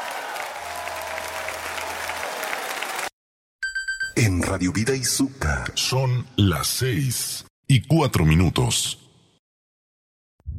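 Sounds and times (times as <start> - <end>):
crowd applause: 0.0 - 3.1
speech: 4.2 - 9.0.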